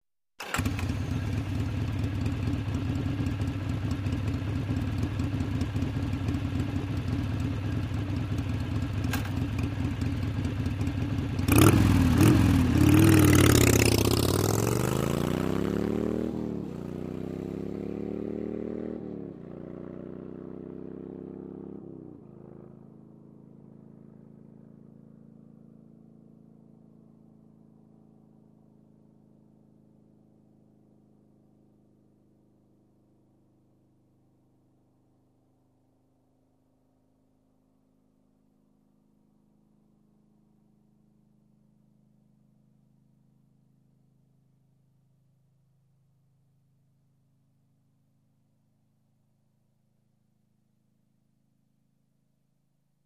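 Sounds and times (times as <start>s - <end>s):
motorcycle starting, idling and driving away: 0.4s - 28.4s.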